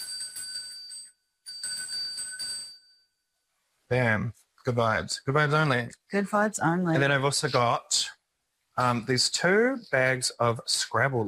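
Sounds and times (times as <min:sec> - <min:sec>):
small cleansing bell ding: 0:00.0 - 0:03.2
speech: 0:03.9 - 0:08.1, 0:08.8 - 0:11.2.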